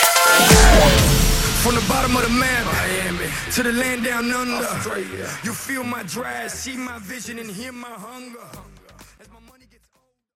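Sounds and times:
club music at 127 bpm: 0:00.0 - 0:07.1.

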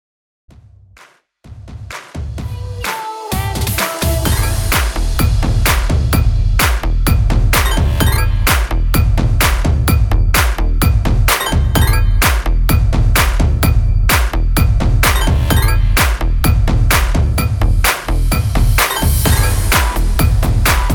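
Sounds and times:
dancehall music at 128 BPM: 0:02.5 - 0:20.9.

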